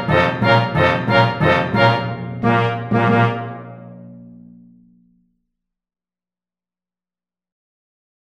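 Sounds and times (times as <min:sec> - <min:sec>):
orchestra: 0:00.0 - 0:04.2.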